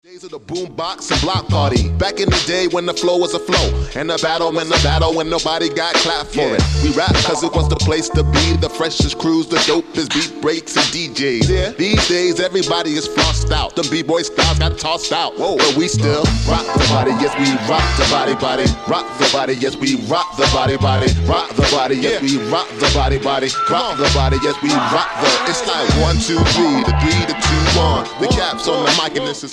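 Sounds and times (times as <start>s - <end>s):
funk box beat with vocal: 0.1s - 29.5s.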